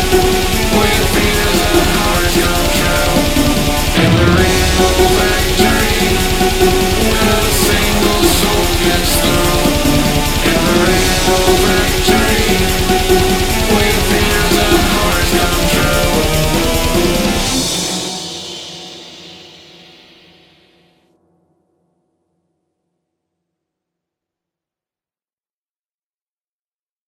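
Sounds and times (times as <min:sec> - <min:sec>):
symphonic metal music: 0:00.0 - 0:20.0.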